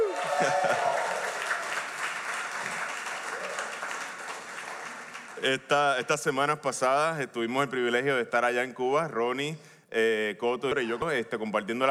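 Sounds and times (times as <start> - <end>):
laughter: 0.0 - 1.1
crowd cheering: 0.0 - 5.2
crowd clapping: 0.0 - 5.8
speech: 5.4 - 11.8.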